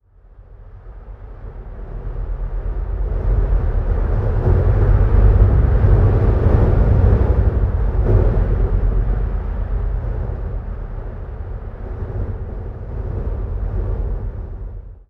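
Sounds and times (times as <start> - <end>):
temple winds outdoors: 0.5 - 14.9.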